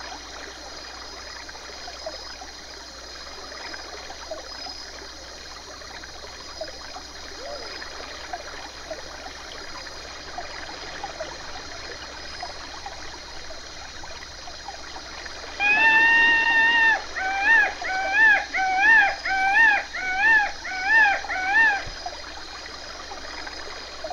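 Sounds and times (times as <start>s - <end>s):
river flowing: 5.0s - 24.1s.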